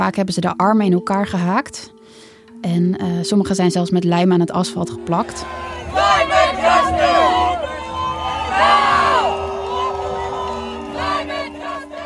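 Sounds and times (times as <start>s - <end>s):
speech: 0.0s - 7.2s
protest crowd cheering and shouting: 5.0s - 12.0s.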